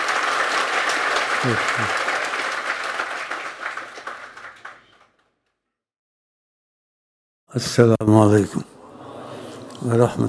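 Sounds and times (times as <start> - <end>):
audience clapping: 0.0 - 5.3
speech: 1.4 - 2.1, 7.6 - 8.7, 9.8 - 10.2.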